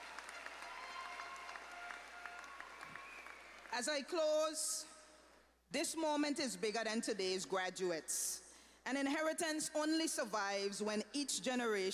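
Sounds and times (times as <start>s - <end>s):
audience applause: 0.0s - 3.8s
speech: 3.7s - 5.0s, 5.7s - 11.9s.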